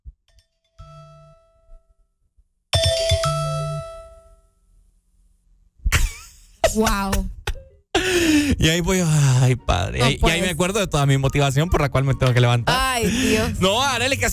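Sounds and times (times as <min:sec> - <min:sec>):
phone alarm ringtone: 0:02.8 - 0:04.4
speech: 0:06.8 - 0:07.3, 0:08.3 - 0:14.3.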